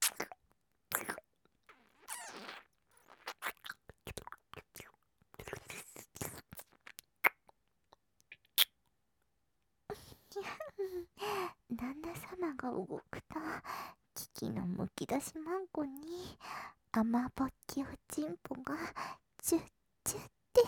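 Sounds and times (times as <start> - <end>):
ASMR ear kissing sounds on the right: 0.0 - 4.3, 8.3 - 8.8
person's voice: 10.4 - 13.6, 14.2 - 16.4, 17.0 - 20.6.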